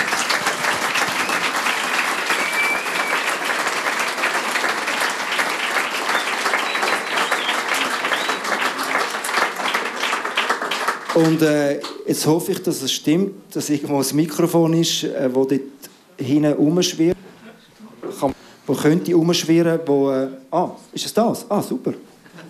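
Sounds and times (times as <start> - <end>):
audience applause: 0.0 - 11.6
speech: 11.2 - 17.2, 18.2 - 22.1.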